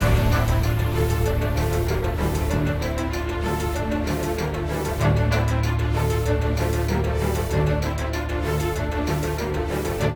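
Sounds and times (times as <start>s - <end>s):
battle music: 0.0s - 10.1s.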